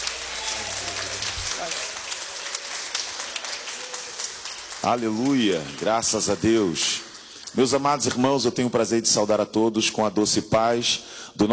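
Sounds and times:
audience clapping: 0:00.0 - 0:08.8
speech: 0:04.8 - 0:11.5.

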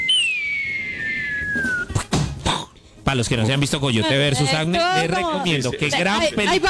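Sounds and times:
cartoon falling anvil whistle sound effect: 0:00.0 - 0:02.1
speech: 0:03.1 - 0:06.6.

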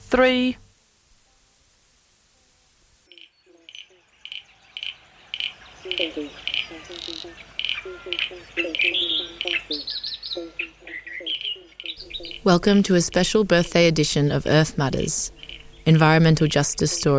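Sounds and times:
speech: 0:00.1 - 0:00.6, 0:09.7 - 0:10.6, 0:12.4 - 0:17.1
chorus of frogs calling: 0:02.3 - 0:17.1.

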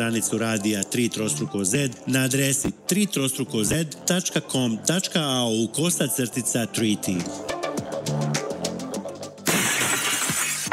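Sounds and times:
speech: 0:00.0 - 0:08.3
car windshield glass shattering: 0:09.5 - 0:10.7.

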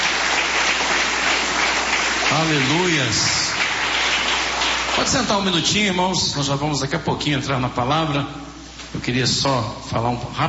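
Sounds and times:
church congregation clapping during a worship service: 0:00.0 - 0:06.1
speech: 0:02.4 - 0:03.4, 0:05.0 - 0:10.4.

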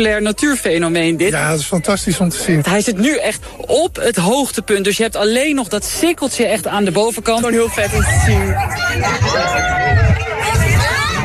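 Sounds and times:
speech: 0:00.0 - 0:10.0
overlapping voices shouting and whooping: 0:07.4 - 0:11.2
spectators cheering at a solar eclipse: 0:07.6 - 0:11.2.

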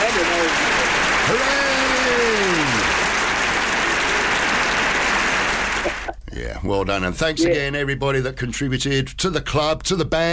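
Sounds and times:
crowd clapping: 0:00.0 - 0:06.2
speech: 0:06.6 - 0:10.3.

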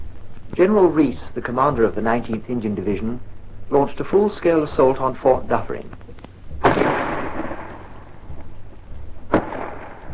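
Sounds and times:
speech: 0:00.6 - 0:06.2
shell bursting on a fort wall: 0:06.6 - 0:08.3, 0:09.3 - 0:10.1
5.5 gun firing at a fort wall at point-blank range: 0:06.6 - 0:08.4, 0:09.3 - 0:10.1.

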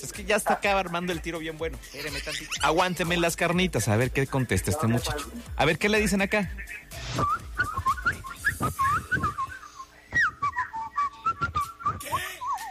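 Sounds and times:
speech: 0:00.0 - 0:07.4
laughter: 0:01.9 - 0:03.3
person whistling: 0:07.0 - 0:12.6.

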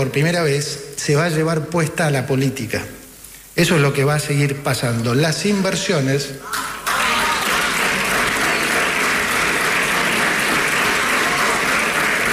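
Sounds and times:
speech: 0:00.0 - 0:03.0, 0:03.6 - 0:06.7
audience applause: 0:06.5 - 0:12.3.

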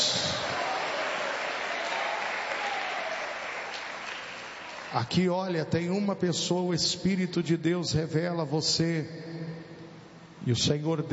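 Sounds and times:
audience applauding: 0:00.0 - 0:05.0
speech: 0:04.9 - 0:09.4, 0:10.4 - 0:11.1.

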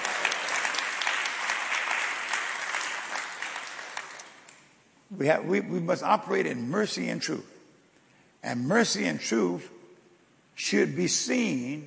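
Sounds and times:
audience clapping: 0:00.0 - 0:04.7
speech: 0:05.2 - 0:07.6, 0:08.4 - 0:09.8, 0:10.6 - 0:11.8.

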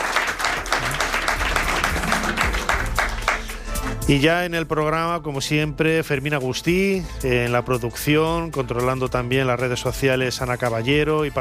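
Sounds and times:
audience applause: 0:00.0 - 0:03.6
speech: 0:04.1 - 0:11.3.

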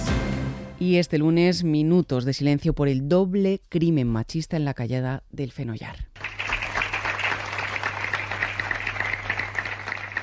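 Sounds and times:
speech: 0:00.8 - 0:06.4
townspeople applauding: 0:06.2 - 0:10.2.

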